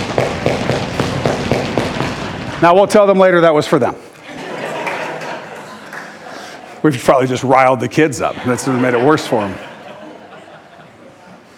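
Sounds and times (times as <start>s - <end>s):
crowd stomping on the floor: 0.0s - 2.5s
speech: 2.6s - 4.0s, 6.8s - 9.7s
laughter: 4.2s - 11.5s.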